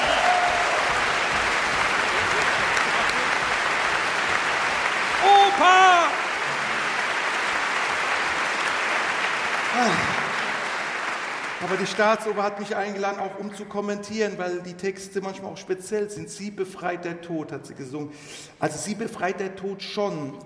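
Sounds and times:
audience applause: 0.0 - 13.0
speech: 11.7 - 20.4.

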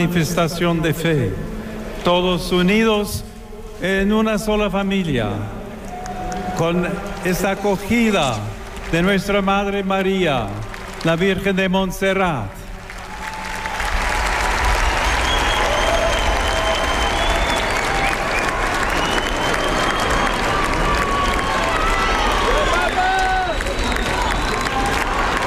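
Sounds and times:
speech: 0.0 - 5.6, 6.6 - 12.6
large crowd of faithful cheering and applauding: 5.7 - 11.5, 12.7 - 25.4
shouts and whistles: 14.6 - 25.4.

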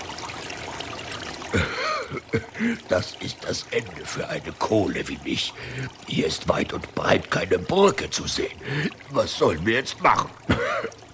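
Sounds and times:
brook water trickling: 0.0 - 11.1
speech: 1.5 - 11.0.

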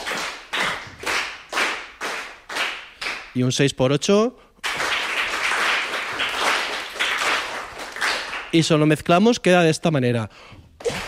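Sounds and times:
rhythmic hand clapping in three-four time: 0.0 - 3.4, 4.6 - 8.7
speech: 3.4 - 4.5, 8.5 - 10.6.

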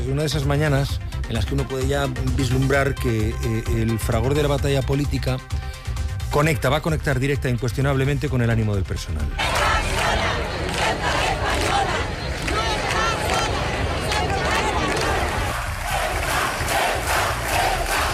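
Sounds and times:
speech: 0.1 - 9.6
large crowd shouting and chanting at a street protest: 9.3 - 18.1.

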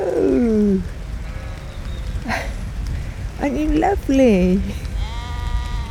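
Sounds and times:
outdoor ambience: 0.0 - 5.9
speech: 3.4 - 4.9
ewe bleating in a field: 5.0 - 5.9.

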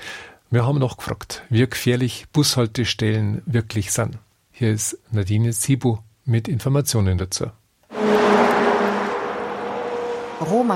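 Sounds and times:
speech: 0.5 - 7.6, 10.4 - 10.7
cars rushing past on a road with a 100 km/h limit: 7.9 - 10.7.

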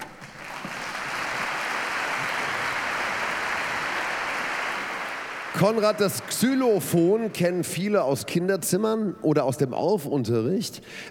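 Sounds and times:
audience applause: 0.0 - 7.9
speech: 5.6 - 11.0.

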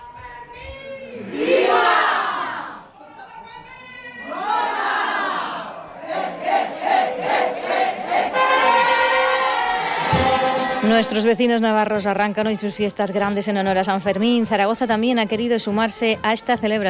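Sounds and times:
crowd cheering and chanting at a San Fermín chupinazo in a Zaragoza bar: 0.2 - 2.9, 4.0 - 13.5
speech: 11.0 - 16.8.

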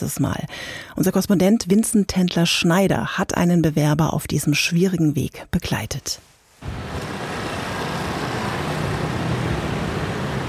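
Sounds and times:
speech: 0.0 - 6.9
morning rush hour city traffic in Brussels: 6.6 - 10.4.

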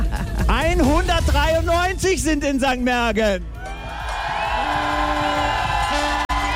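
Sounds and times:
speech: 0.8 - 3.6
crowd cheering: 3.4 - 6.5.

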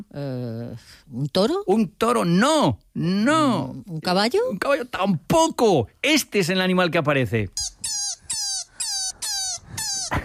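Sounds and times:
speech: 0.1 - 8.0
rabbit squeaking: 7.5 - 10.2.

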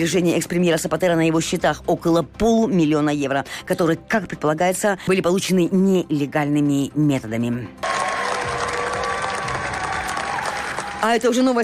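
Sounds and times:
speech: 0.0 - 7.9, 11.0 - 11.6
faint cheering: 7.8 - 11.1
large audience applause ovation at film premiere: 7.8 - 11.5.

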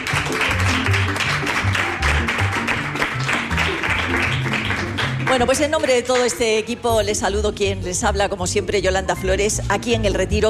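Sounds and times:
applause: 0.0 - 6.7
speech: 5.4 - 10.4.

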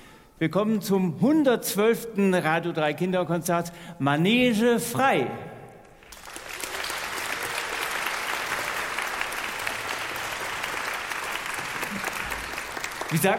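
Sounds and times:
speech: 0.4 - 5.5, 13.1 - 13.3
audience applause in concert tent: 6.0 - 13.3.

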